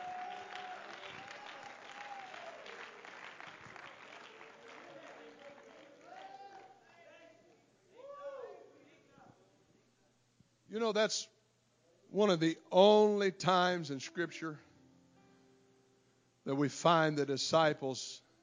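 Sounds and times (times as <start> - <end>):
audience clapping: 0.0 - 7.6
speech: 10.8 - 11.4, 12.1 - 14.7, 16.5 - 18.2.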